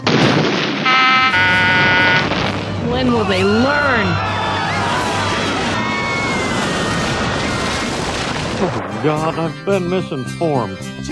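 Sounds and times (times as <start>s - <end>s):
loud explosion: 0.0s - 3.4s, 4.4s - 9.5s
speech: 3.0s - 4.3s, 8.6s - 11.1s.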